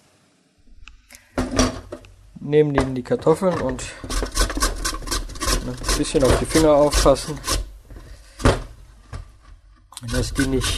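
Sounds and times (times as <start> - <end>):
speech: 2.4 - 4.2, 5.7 - 7.6, 10.2 - 10.7
metal grater set into a bowl in a home kitchen: 3.2 - 7.7.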